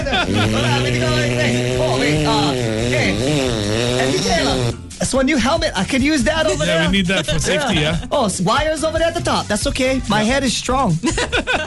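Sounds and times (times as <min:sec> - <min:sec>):
laughter: 0:00.0 - 0:02.4, 0:06.4 - 0:08.3, 0:11.0 - 0:11.6
voice imitating a Vespa scooter engine revving: 0:00.1 - 0:04.8
speech: 0:00.2 - 0:11.6.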